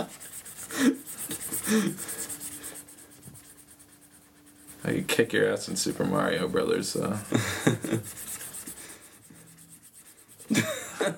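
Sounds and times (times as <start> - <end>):
pen or pencil drawing on paper: 0.0 - 10.6
speech: 1.7 - 2.1, 4.9 - 8.3.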